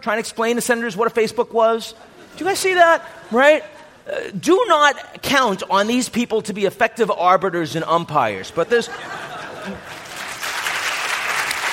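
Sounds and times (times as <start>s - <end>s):
speech: 0.0s - 10.0s
laughter: 8.6s - 10.4s
audience applause: 9.8s - 11.7s.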